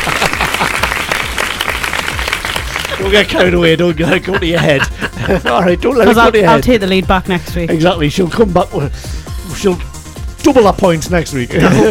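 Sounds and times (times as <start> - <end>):
audience applause for a contestant: 0.0 - 3.7
laughter: 0.0 - 6.6, 11.5 - 11.8
speech: 3.0 - 11.8.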